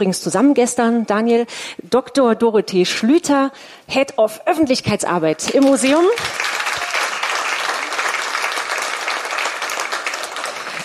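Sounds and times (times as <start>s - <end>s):
speech: 0.0s - 6.6s
audience applause: 5.9s - 10.8s.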